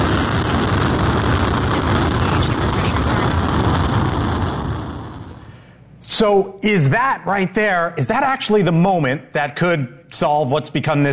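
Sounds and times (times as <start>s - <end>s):
SpaceX Falcon 9 rocket lift-off on the Transporter 18 mission: 0.0s - 5.6s
speech: 6.2s - 11.1s.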